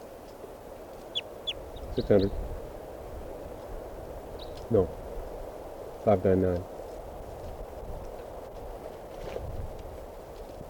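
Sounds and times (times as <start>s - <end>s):
bird chirps: 1.1s - 2.4s, 4.4s - 4.7s
speech: 2.0s - 2.5s, 4.7s - 5.0s, 6.0s - 6.7s.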